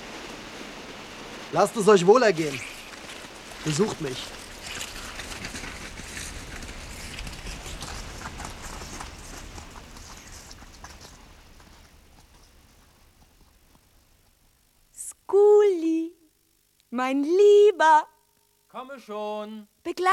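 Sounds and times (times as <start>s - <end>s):
constant rushing noise: 0.0s - 13.8s
horse hooves clip-clopping: 0.0s - 14.9s
speech: 1.5s - 2.7s, 3.6s - 4.4s, 17.1s - 18.1s, 18.8s - 20.1s.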